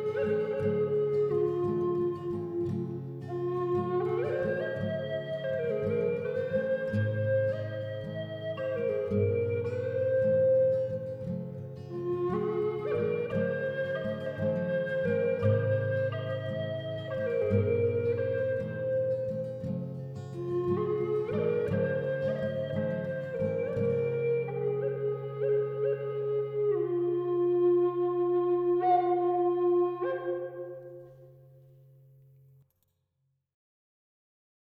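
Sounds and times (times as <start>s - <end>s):
Eastern Red Cedar flute in low F sharp playing: 0.0s - 31.8s.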